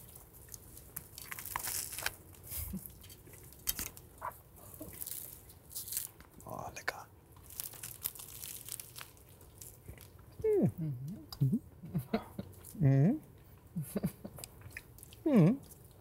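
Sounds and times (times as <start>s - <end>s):
person chewing an overly large bite of hand-held food: 0.0s - 6.4s, 7.3s - 16.0s
hums and grunts made with a full mouth: 10.4s - 13.2s.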